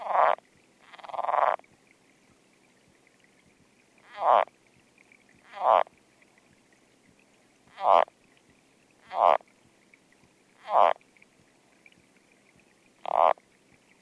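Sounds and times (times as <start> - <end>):
foothill yellow-legged frog clicking and rasping: 0.0 - 1.6, 4.0 - 4.5, 5.4 - 5.9, 7.7 - 8.1, 9.0 - 9.5, 10.6 - 11.0, 13.0 - 13.4.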